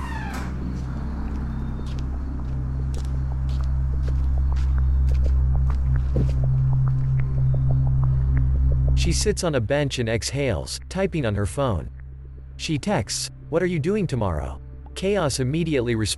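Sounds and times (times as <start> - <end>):
low droning hum: 0.0 - 15.0
footsteps walking away from table: 0.4 - 7.2
speech: 9.0 - 12.0, 12.6 - 16.1.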